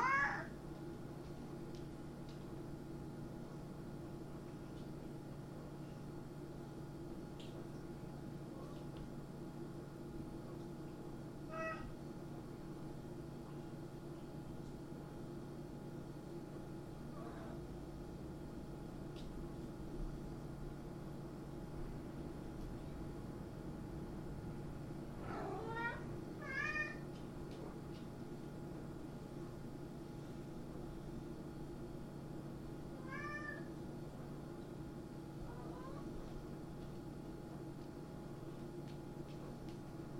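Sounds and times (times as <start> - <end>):
cat meowing: 0.0 - 0.5, 11.5 - 11.9, 25.2 - 27.0, 33.0 - 33.7
constant electrical hum: 0.0 - 40.1.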